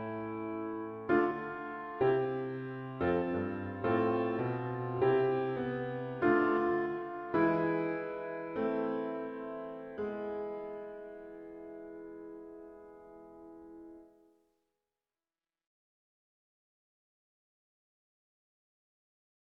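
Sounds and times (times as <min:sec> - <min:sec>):
piano hymn: 0:00.0 - 0:14.2.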